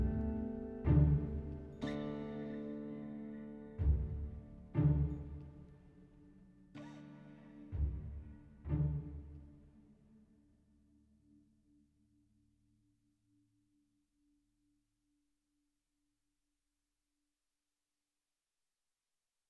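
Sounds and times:
Celtic forest music: 0.0s - 10.2s.

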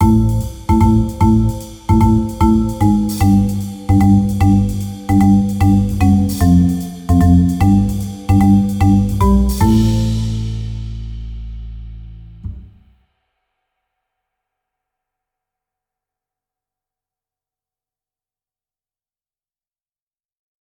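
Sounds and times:
funky drum break: 0.0s - 10.6s.

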